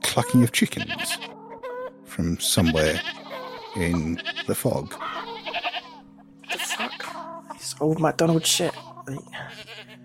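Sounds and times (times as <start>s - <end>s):
speech: 0.2s - 1.3s, 2.2s - 5.1s, 7.8s - 9.7s
goat-like bleats: 0.8s - 1.3s, 2.6s - 7.3s, 8.2s - 10.0s.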